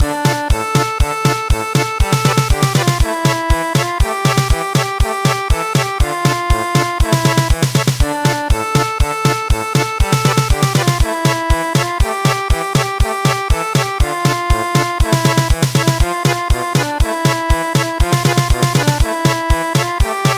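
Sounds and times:
German polka music: 0.0s - 20.3s.

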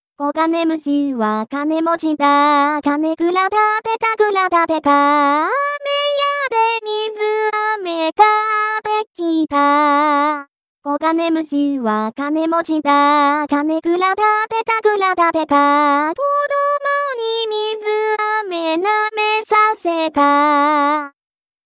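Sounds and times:
vocals: 0.2s - 21.2s.

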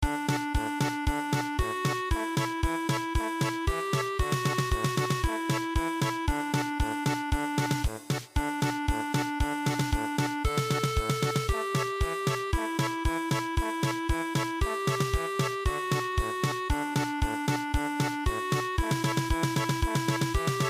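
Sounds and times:
German polka music: 0.0s - 20.6s.

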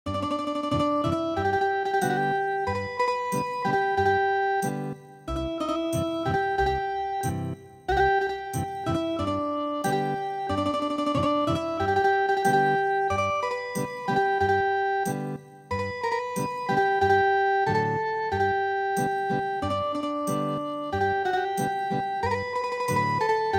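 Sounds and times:
ethnic guitar music: 0.1s - 23.5s.

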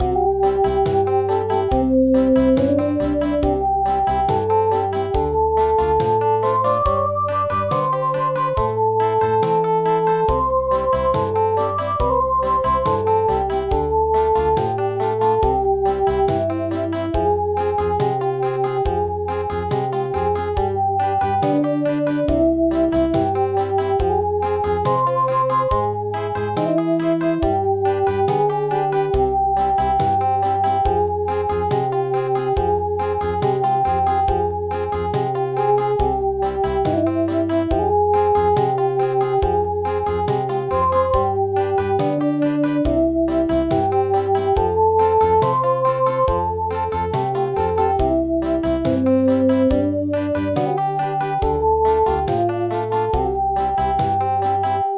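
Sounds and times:
country midi music: 0.0s - 54.9s.

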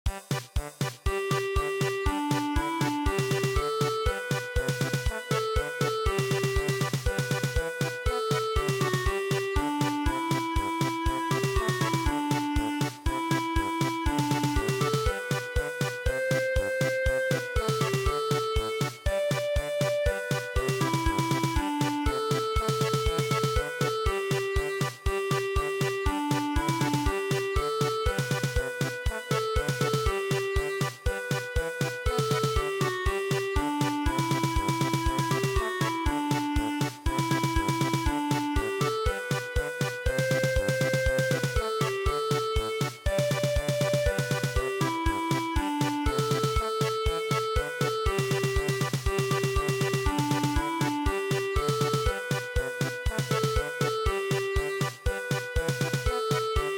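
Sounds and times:
German polka music: 0.1s - 56.7s.

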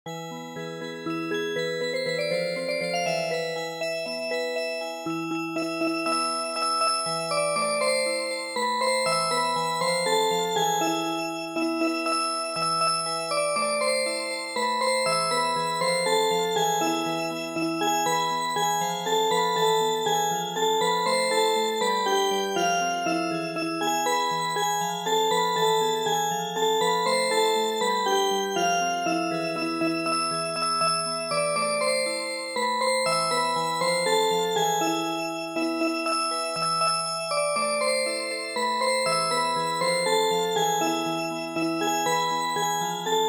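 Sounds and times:
traditional music box: 0.1s - 43.2s.

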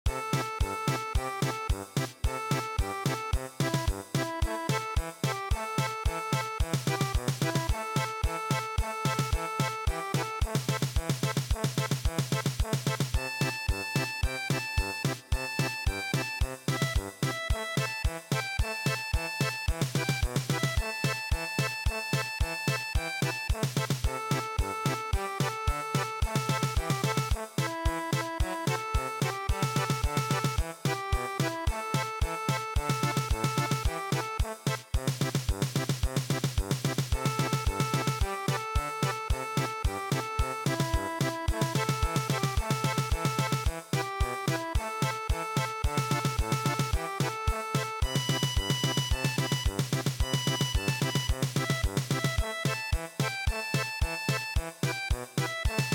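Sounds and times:
German polka music: 0.0s - 55.9s.

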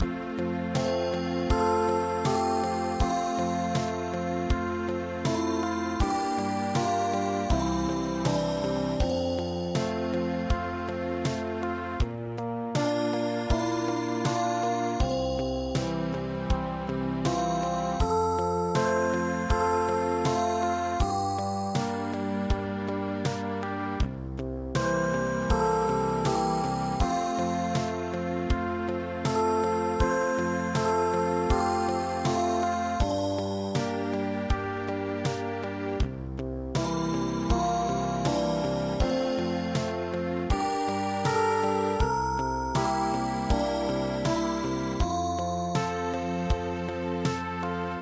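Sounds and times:
ballade music: 0.0s - 24.0s, 24.7s - 36.0s, 36.7s - 47.9s.

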